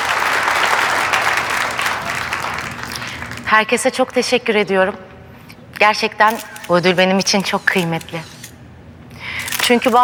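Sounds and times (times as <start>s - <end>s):
audience applause for award recipient: 0.0s - 3.5s
speech: 3.5s - 5.1s, 5.8s - 8.3s, 9.7s - 10.0s.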